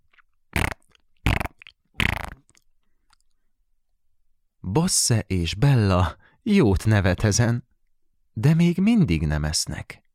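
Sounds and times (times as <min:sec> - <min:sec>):
ketchup bottle squirting with farting sound: 0:00.6 - 0:02.4
speech: 0:04.7 - 0:07.7, 0:08.4 - 0:10.0.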